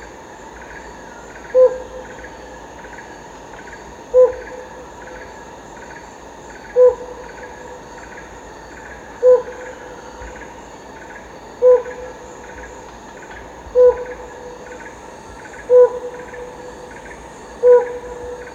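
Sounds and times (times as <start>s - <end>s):
helmeted hornbill hooting in Danum Borneo: 1.2s - 2.5s, 4.1s - 5.4s, 6.6s - 8.3s, 8.9s - 10.6s, 11.6s - 12.8s, 13.6s - 18.5s.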